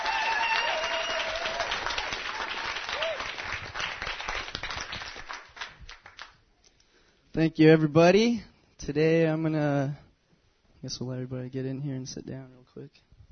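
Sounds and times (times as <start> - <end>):
audience applause: 0.0 - 6.4
speech: 7.4 - 10.0, 10.8 - 13.1.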